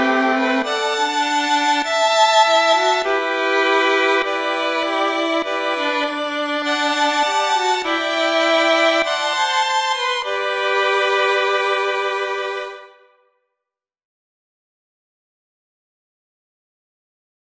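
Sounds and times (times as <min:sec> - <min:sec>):
violin melody with chords: 0:00.0 - 0:13.2.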